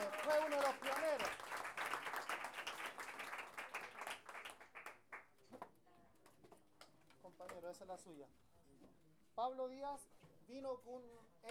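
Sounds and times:
audience applause at a folk-culture gathering: 0:00.0 - 0:05.0
speech: 0:00.5 - 0:01.4, 0:07.8 - 0:11.5.

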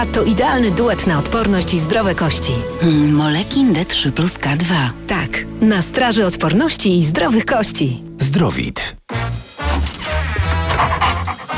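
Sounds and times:
speech: 0:00.0 - 0:09.1
dog barking and yipping: 0:10.6 - 0:11.5.

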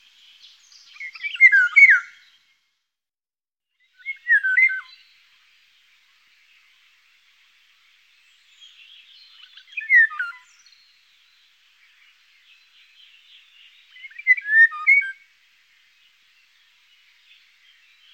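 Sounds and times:
Eurasian golden oriole fluty yodelling whistle: 0:00.9 - 0:02.2, 0:03.9 - 0:05.0, 0:09.3 - 0:10.6, 0:13.9 - 0:15.2.

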